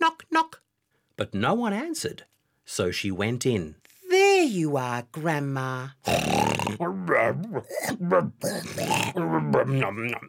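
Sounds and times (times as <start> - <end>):
speech: 1.2 - 3.8, 4.4 - 10.2
person imitating loud pig-like snoring: 6.0 - 9.9.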